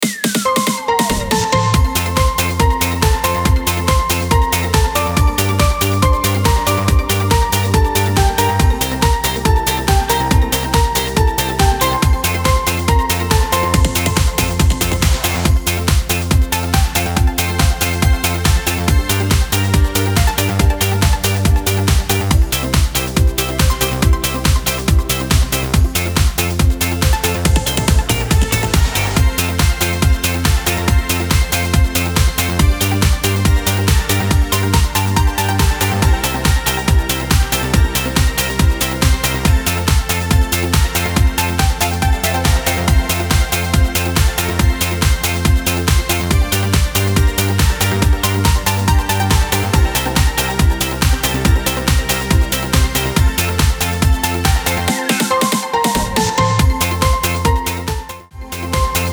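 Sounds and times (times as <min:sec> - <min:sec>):
karaoke singing: 0:00.0 - 0:59.1.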